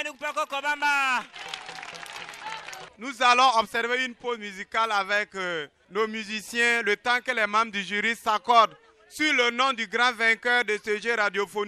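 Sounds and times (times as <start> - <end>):
audience applause: 0.1 - 3.0
speech: 0.2 - 1.5, 2.5 - 11.6.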